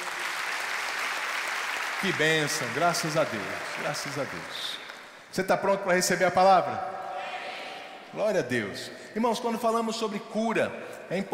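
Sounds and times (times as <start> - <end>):
audience applause: 0.0 - 5.1
speech: 2.0 - 7.0, 8.1 - 11.3.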